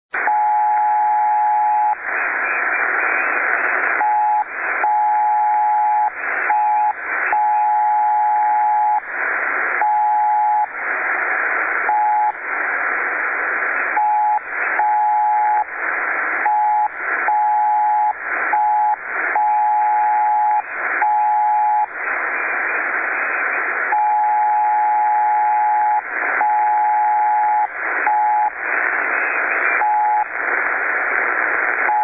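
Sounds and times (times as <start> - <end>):
noise: 0.1 - 32.0.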